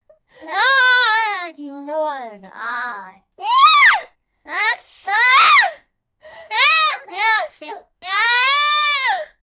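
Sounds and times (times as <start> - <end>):
girl vocalizing: 0.4 - 1.5, 2.6 - 5.8, 6.5 - 9.3.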